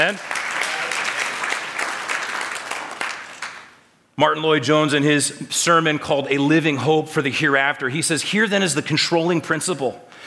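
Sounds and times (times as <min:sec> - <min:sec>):
speech: 0:00.0 - 0:00.4, 0:04.2 - 0:10.2
church audience applauding: 0:00.0 - 0:03.8.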